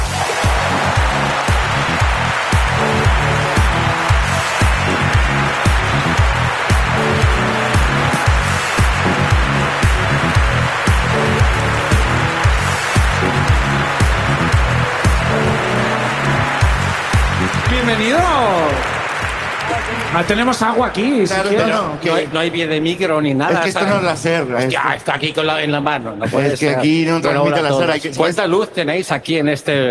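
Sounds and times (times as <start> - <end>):
audience applause: 0.0 - 21.2
speech: 20.2 - 29.8.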